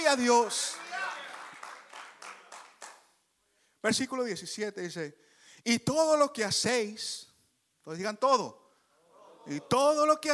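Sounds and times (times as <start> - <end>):
audience applauding: 0.0 - 3.1
speech: 0.1 - 0.8, 3.8 - 8.6, 9.4 - 10.3.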